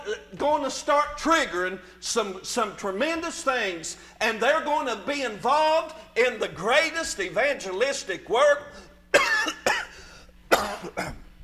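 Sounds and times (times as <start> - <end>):
speech: 0.4 - 9.6
preacher with a sore throat coughing: 9.1 - 11.3.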